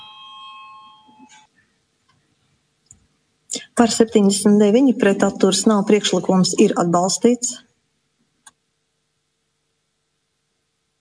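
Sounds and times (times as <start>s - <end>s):
electronic bell ringing in a parliament chamber to call a vote: 0.0s - 1.5s
quiet room noise: 0.0s - 11.0s
speech: 3.8s - 7.7s.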